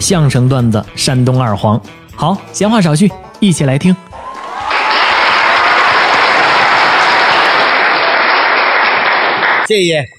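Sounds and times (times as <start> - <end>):
speech: 0.0 - 4.3, 9.7 - 10.1
warm audience applause: 4.2 - 9.7.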